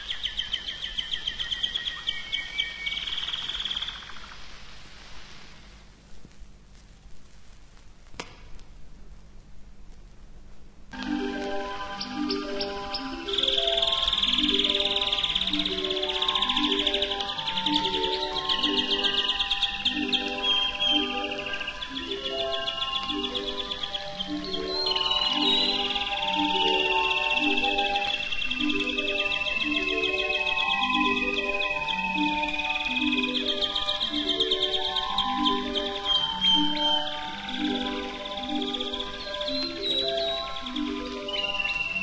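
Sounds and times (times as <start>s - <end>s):
canary song trills: 0.0s - 4.8s, 11.0s - 42.0s
soft melodic music: 11.0s - 42.0s.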